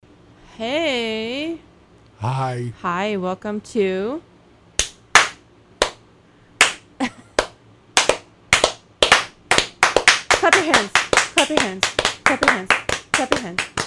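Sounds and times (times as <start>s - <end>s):
faint low hum: 0.1s - 13.8s
speech: 0.6s - 1.6s, 2.2s - 4.3s, 11.5s - 13.8s
sharp hand claps: 4.8s - 6.0s, 6.6s - 13.8s.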